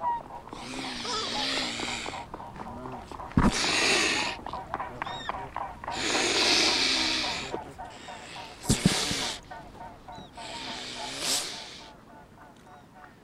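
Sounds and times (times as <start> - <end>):
mute swans honking and snorting at a lakeshore: 0.0 - 13.2.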